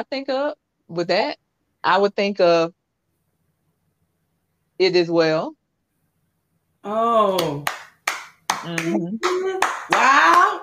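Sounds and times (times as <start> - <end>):
speech: 0.0 - 2.8, 4.8 - 5.6, 6.8 - 7.8, 8.6 - 10.6
Charleston clap hand clapping: 7.3 - 10.6.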